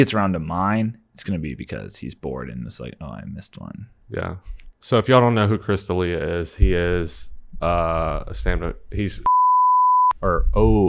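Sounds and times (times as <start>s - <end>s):
speech: 0.0s - 9.3s, 10.2s - 10.8s
censor bleep tone: 9.3s - 10.2s.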